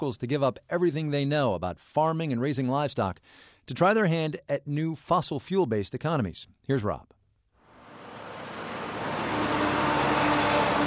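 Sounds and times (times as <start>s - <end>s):
speech: 0.0s - 7.2s
coal trucks racing out of a mine: 7.6s - 10.8s.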